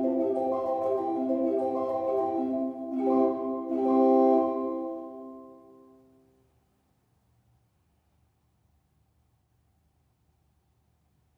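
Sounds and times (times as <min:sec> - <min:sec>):
moderately fast instrumental music: 0:00.0 - 0:06.2.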